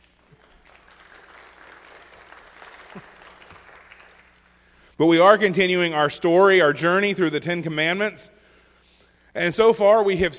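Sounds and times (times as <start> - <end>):
audience applause: 0.0 - 4.6
speech: 5.0 - 8.4, 9.3 - 10.3.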